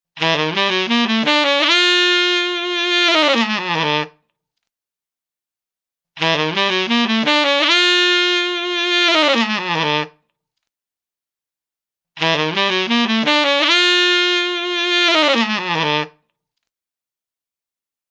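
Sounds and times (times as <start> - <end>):
saxophone riff: 0.2 - 4.2, 6.2 - 10.2, 12.2 - 16.2.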